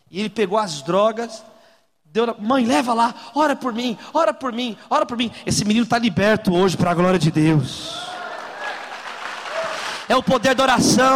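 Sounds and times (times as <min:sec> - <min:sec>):
speech: 0:00.1 - 0:01.5, 0:02.1 - 0:08.1, 0:10.1 - 0:11.1
audience applause: 0:08.0 - 0:10.2.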